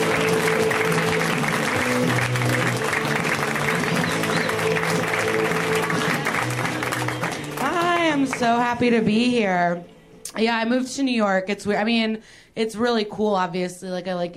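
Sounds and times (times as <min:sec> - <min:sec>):
audience applauding a comedian at a stand-up comedy show: 0:00.0 - 0:08.6
speech: 0:08.4 - 0:14.3.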